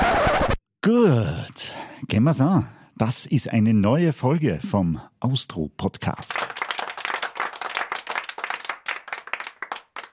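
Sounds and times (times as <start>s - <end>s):
speech: 0.8s - 6.6s
applause sound effect: 6.2s - 10.1s.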